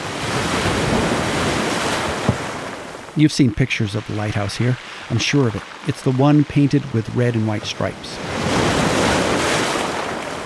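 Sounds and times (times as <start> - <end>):
ocean waves breaking on rocky shore: 0.0 - 10.4
speech: 3.2 - 8.6.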